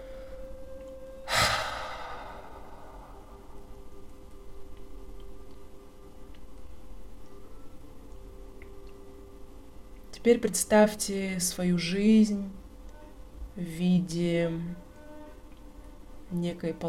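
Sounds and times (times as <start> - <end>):
faint steady tone: 0.0 - 16.8
sharp exhale through the mouth during a guided breathing exercise: 1.3 - 3.4
speech: 10.2 - 12.6, 13.6 - 14.8, 16.3 - 16.8.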